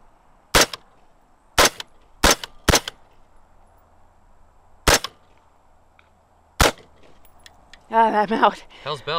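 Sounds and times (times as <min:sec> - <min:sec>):
gunshots fired at a shooting range: 0:00.5 - 0:00.8, 0:01.6 - 0:03.0, 0:04.8 - 0:05.2, 0:06.6 - 0:07.0
speech: 0:07.9 - 0:09.1.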